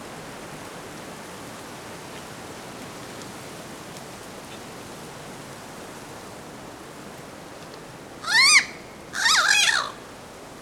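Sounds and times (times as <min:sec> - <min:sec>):
bird squealing and grating cries: 0:08.2 - 0:10.0.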